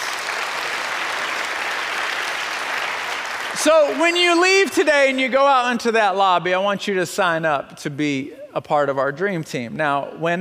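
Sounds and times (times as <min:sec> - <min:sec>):
crowd applauding: 0:00.0 - 0:04.9
speech: 0:03.6 - 0:10.3.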